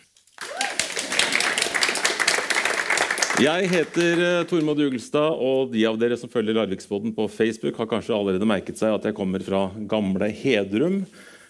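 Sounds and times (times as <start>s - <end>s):
audience applause: 0.3s - 5.0s
speech: 3.4s - 11.3s.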